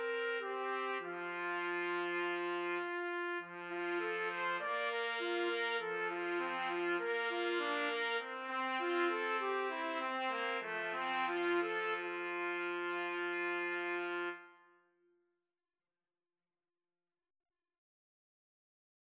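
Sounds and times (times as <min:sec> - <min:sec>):
trumpet karaoke backing track: 0:00.0 - 0:14.6.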